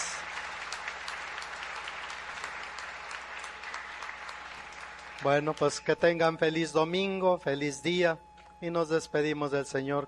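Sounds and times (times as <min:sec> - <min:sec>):
audience applause: 0:00.0 - 0:05.9
speech: 0:05.2 - 0:10.0.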